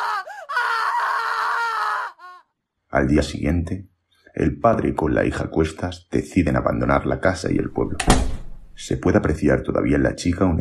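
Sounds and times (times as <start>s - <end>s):
young woman screaming in horror: 0.0s - 2.5s
speech: 2.9s - 10.5s.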